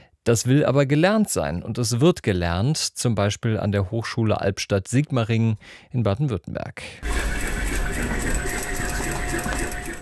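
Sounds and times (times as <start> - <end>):
speech: 0.2 - 7.3
sewing machines running in a university clothing lab: 7.0 - 10.0.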